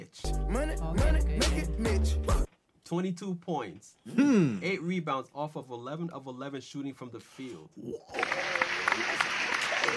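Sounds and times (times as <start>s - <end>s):
speech: 0.1s - 9.4s
clapping: 8.2s - 9.9s.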